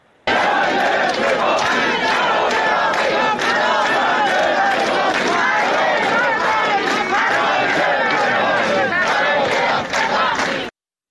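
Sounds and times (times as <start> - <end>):
hundreds of teachers chanting slogans at a rally: 0.2 - 10.7.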